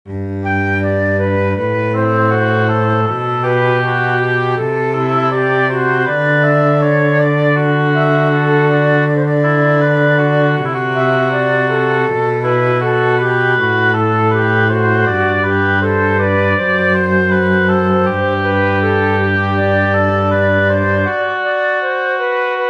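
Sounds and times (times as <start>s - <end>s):
canon inversion subject in bass: 0.1s - 22.5s.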